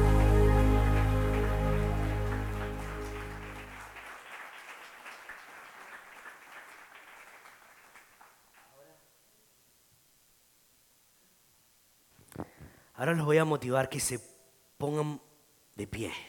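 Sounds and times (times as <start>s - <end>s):
held keyboard chord: 0.0s - 3.9s
audience clapping: 0.0s - 8.8s
speech: 13.0s - 16.2s.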